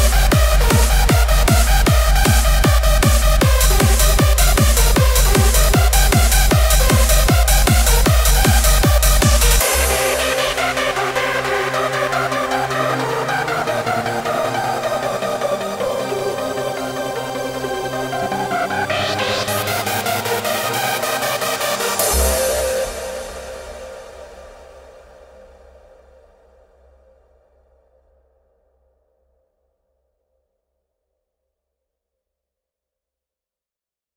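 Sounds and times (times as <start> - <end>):
hardstyle remix: 0.0 - 25.1.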